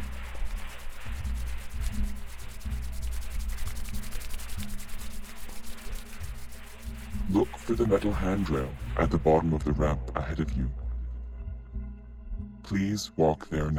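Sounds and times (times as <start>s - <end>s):
hands being rubbed quickly together: 0.0s - 9.4s
speech: 7.3s - 10.8s, 12.7s - 13.7s.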